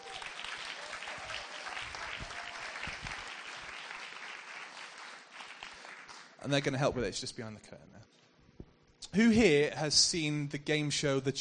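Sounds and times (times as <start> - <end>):
audience applause welcoming two boys to the front of a gathering: 0.0 - 6.4
speech: 6.4 - 8.2, 9.2 - 11.3.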